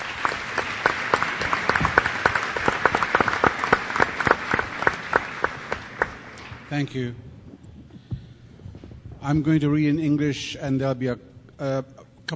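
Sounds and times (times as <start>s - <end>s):
applause: 0.0s - 7.0s
speech: 6.7s - 7.3s, 9.2s - 12.3s.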